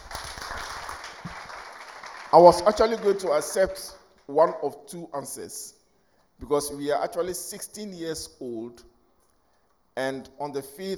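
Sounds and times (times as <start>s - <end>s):
audience clapping: 0.0s - 4.0s
speech: 2.3s - 5.8s, 6.4s - 8.9s, 10.0s - 10.9s.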